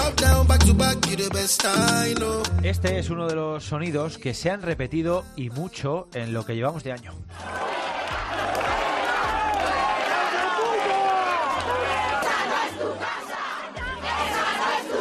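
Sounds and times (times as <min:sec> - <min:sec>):
speech: 0:00.8 - 0:08.8
crowd protesting against squatters shouting and chanting: 0:07.4 - 0:14.9.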